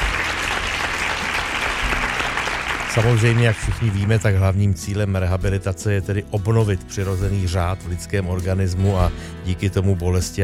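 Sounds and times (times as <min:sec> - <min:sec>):
studio audience applause at a quiz show: 0:00.0 - 0:04.6
speech: 0:02.9 - 0:10.4.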